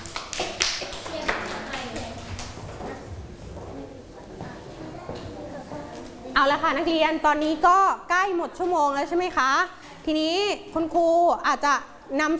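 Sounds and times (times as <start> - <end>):
classroom clapping: 0.0 - 3.0
speech: 6.4 - 12.3.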